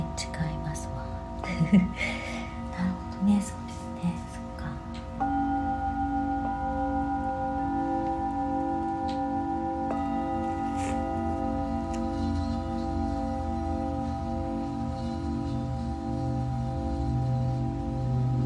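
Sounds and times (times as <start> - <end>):
singing bowls ringing: 0.0 - 18.4.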